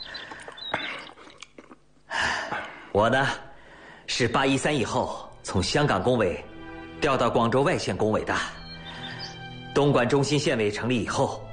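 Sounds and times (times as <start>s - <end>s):
person eating hot maogen congee with wet chewing: 0.2s - 1.9s
speech: 3.0s - 3.4s, 4.1s - 8.6s, 9.8s - 11.4s.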